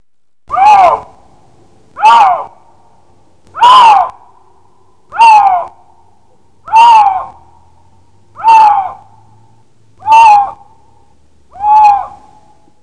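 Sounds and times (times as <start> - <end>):
lynx call: 0.5 - 6.0, 6.6 - 7.6, 8.4 - 9.3, 10.0 - 10.9, 11.5 - 12.6.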